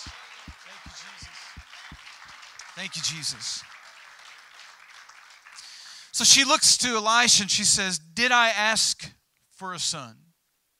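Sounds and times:
audience clapping hands: 0:00.0 - 0:06.6
speech: 0:02.8 - 0:03.8, 0:06.2 - 0:10.2.

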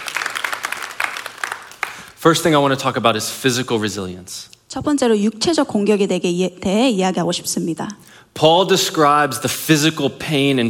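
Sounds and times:
audience applause: 0:00.0 - 0:02.2
speech: 0:02.2 - 0:10.6.

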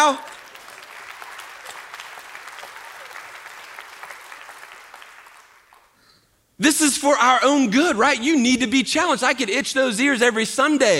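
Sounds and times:
speech: 0:00.0 - 0:00.4, 0:06.6 - 0:10.9
audience applause: 0:00.0 - 0:06.0.

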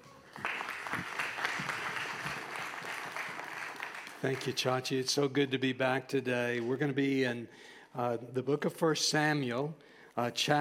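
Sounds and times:
church congregation applause at Grace Point welcoming a guest speaker: 0:00.0 - 0:04.6
speech: 0:04.2 - 0:10.6.

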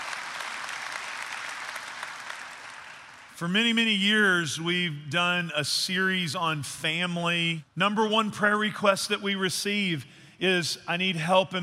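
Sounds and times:
audience applauding in church: 0:00.0 - 0:03.3
speech: 0:03.4 - 0:11.6.

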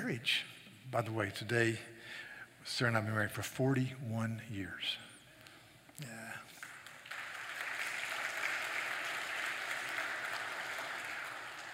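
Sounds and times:
speech: 0:00.1 - 0:05.1, 0:06.0 - 0:06.6
audience applause: 0:06.6 - 0:11.7.

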